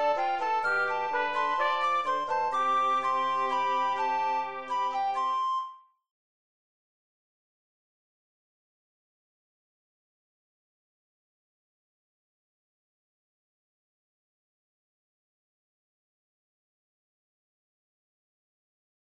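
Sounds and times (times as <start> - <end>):
brass trio playing: 0.0 - 4.9.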